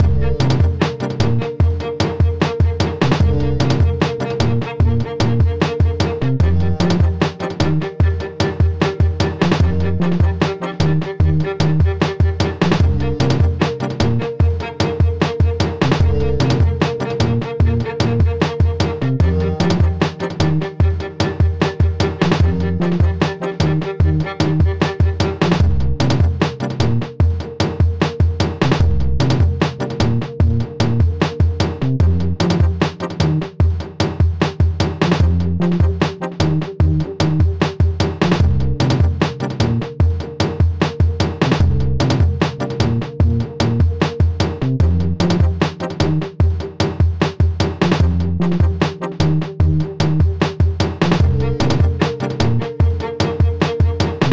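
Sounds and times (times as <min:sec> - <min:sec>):
smooth and emotional hip hop beat: 0:00.0 - 0:33.6, 0:35.1 - 0:54.3.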